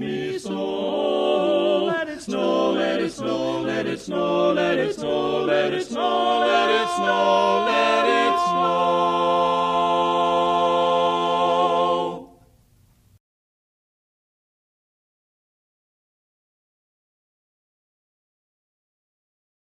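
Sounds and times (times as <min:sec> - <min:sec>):
tenor voice singing a Christmas song learning track: 0:00.0 - 0:12.3.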